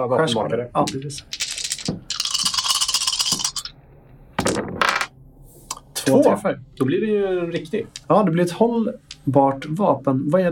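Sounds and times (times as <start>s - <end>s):
speech: 0.0s - 2.0s, 6.1s - 10.5s
dice clattering across a hard surface: 0.9s - 3.7s.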